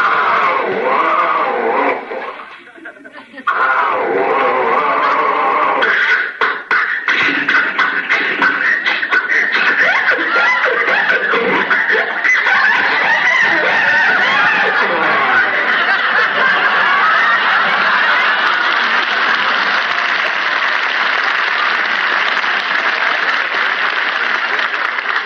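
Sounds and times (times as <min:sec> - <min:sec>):
laughter: 0:00.0 - 0:25.2
voice imitating an old car engine sputtering and failing to start: 0:03.5 - 0:16.0.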